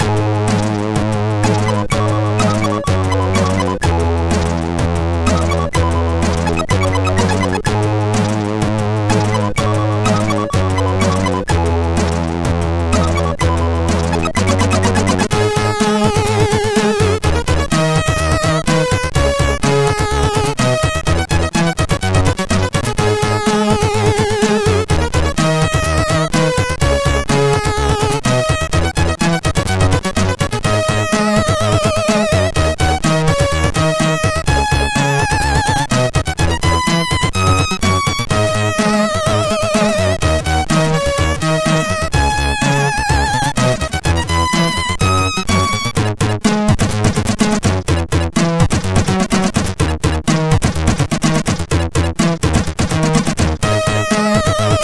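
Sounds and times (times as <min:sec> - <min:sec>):
chiptune melody on MOS6581R3 SID chip: 0:00.0 - 0:54.8.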